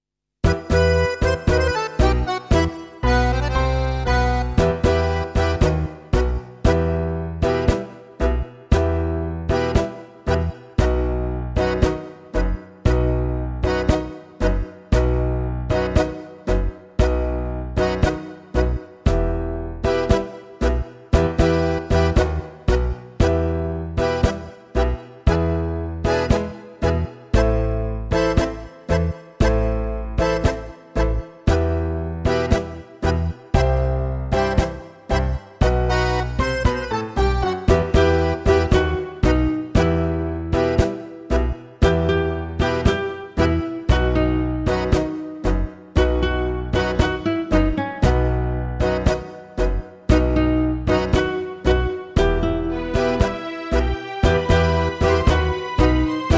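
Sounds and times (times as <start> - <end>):
tango on guitar: 0.4 - 56.3.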